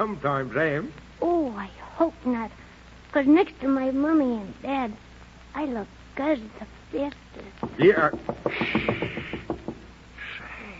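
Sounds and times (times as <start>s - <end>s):
speech: 0.0s - 9.3s
knocking on a door: 7.6s - 9.9s.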